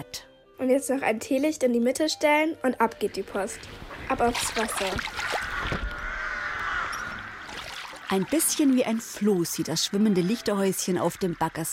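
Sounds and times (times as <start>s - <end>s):
speech: 0.0s - 5.8s, 8.1s - 11.7s
common ravens croaking on a tree: 3.8s - 11.7s.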